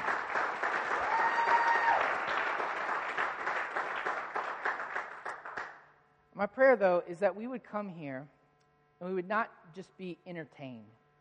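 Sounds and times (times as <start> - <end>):
audience applause: 0.0 - 5.8
whoops and voices: 1.0 - 2.1
speech: 6.4 - 8.4, 9.0 - 11.0.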